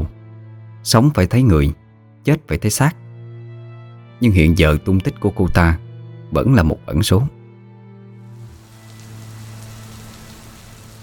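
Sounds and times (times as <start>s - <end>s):
speech: 0.8s - 3.0s, 4.2s - 7.4s
river water rushing down from upstream: 8.4s - 11.0s
steady rain: 8.4s - 11.0s.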